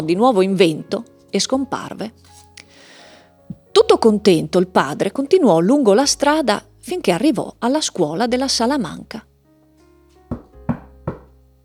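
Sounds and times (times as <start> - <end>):
speech: 0.0 - 2.4, 3.7 - 9.3
knocking on a large door: 10.3 - 11.4.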